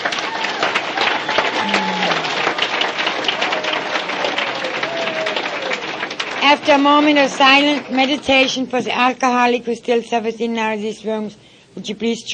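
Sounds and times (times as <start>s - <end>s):
audience applause: 0.0s - 8.5s
speech: 6.6s - 12.3s.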